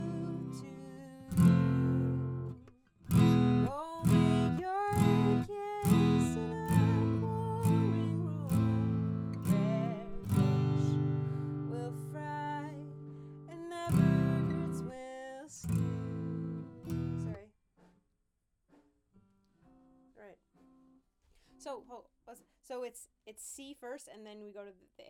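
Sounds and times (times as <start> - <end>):
acoustic guitar: 0.0 - 17.4.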